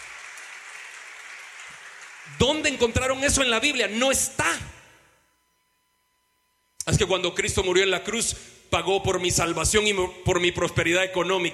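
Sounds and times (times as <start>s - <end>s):
crowd applause: 0.0s - 2.9s
speech: 2.3s - 4.7s, 6.9s - 11.5s.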